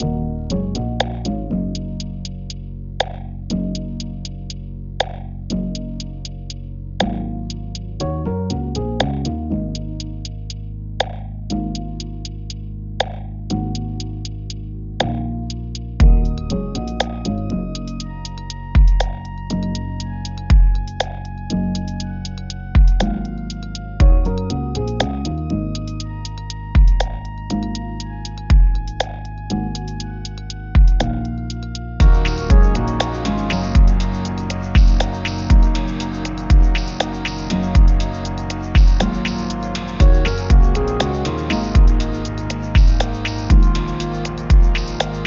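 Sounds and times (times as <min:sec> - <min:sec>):
lazy lo-fi beat: 0:00.0 - 0:45.2.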